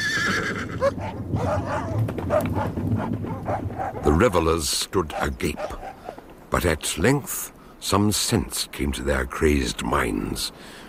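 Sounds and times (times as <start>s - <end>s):
horse whinnying high and shrill: 0.0s - 3.6s
speech: 0.3s - 10.8s
hound barking in short sharp bursts: 0.8s - 4.2s, 5.0s - 6.2s.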